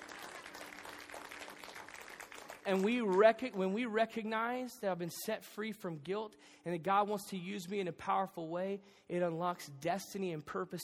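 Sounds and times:
audience applause in a church: 0:00.0 - 0:03.3
speech: 0:02.6 - 0:10.8.

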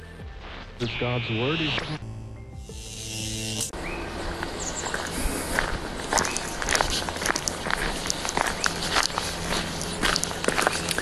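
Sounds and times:
speech: 0:00.8 - 0:02.0
footsteps crunching down a path: 0:03.8 - 0:10.9.

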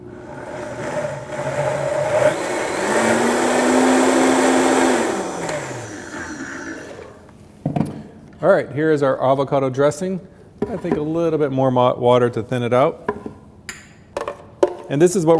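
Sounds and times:
blender blending avocado dressing: 0:00.0 - 0:07.3
speech: 0:08.4 - 0:13.2, 0:14.9 - 0:15.3.

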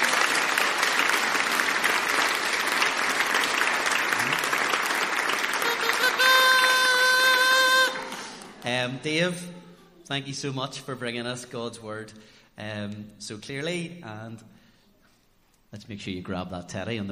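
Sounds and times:
audience clapping: 0:00.0 - 0:08.8
speech: 0:08.7 - 0:14.6, 0:15.7 - 0:17.0.

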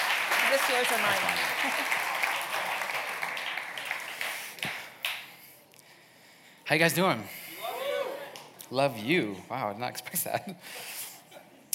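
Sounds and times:
audience applause: 0:00.0 - 0:05.2
speech: 0:00.5 - 0:02.1, 0:06.7 - 0:07.4, 0:08.7 - 0:11.0.

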